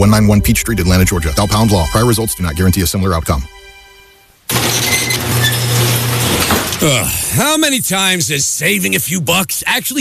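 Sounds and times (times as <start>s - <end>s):
speech: 0.0s - 3.6s, 6.8s - 10.0s
squeaking garage door: 4.5s - 6.9s.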